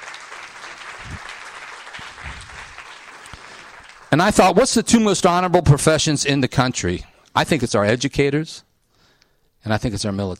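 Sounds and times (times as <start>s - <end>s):
audience applause: 0.0s - 4.4s
speech: 4.1s - 8.7s, 9.6s - 10.3s.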